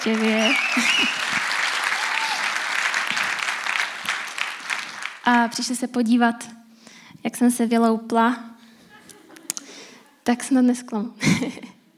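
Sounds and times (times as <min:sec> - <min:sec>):
speech: 0:00.0 - 0:01.4, 0:05.3 - 0:06.6, 0:07.2 - 0:08.5, 0:10.3 - 0:11.7
whistles and cheers: 0:00.0 - 0:02.9
audience applause: 0:00.0 - 0:05.3
laughter: 0:00.6 - 0:01.6, 0:08.8 - 0:09.6.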